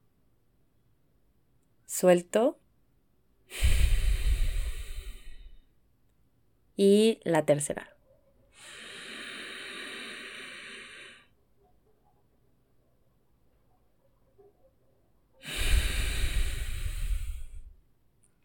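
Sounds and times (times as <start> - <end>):
speech: 2.0 - 2.6, 3.5 - 3.8, 6.8 - 8.0
deep nasal breathing through the diaphragm: 3.5 - 5.7, 8.6 - 11.4, 15.4 - 17.8.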